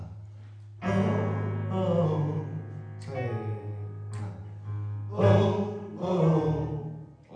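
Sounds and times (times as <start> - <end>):
tenor singing: 0.8 - 4.4, 5.1 - 7.2.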